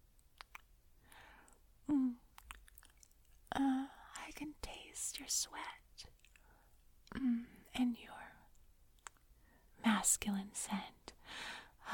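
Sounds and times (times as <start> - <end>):
soft wet kisses and lip smacks against a warm hand: 0.2 - 0.7, 2.3 - 3.4, 9.0 - 9.2
speech: 3.6 - 6.2, 7.2 - 8.4, 9.9 - 11.0.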